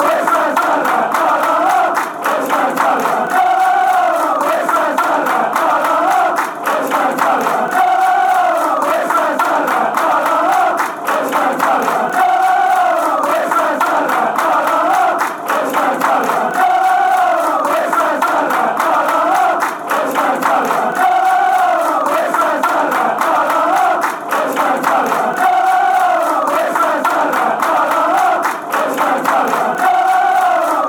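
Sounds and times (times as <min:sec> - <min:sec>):
crowd chanting: 0:00.0 - 0:30.8.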